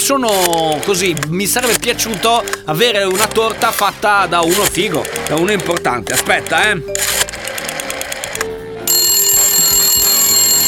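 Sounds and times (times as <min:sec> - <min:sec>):
speech: 0:00.1 - 0:07.2
telephone ringing while a call is placed to order a cake: 0:06.9 - 0:10.6.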